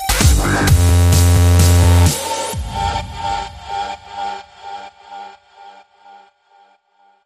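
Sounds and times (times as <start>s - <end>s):
music sting: 0.2s - 4.5s.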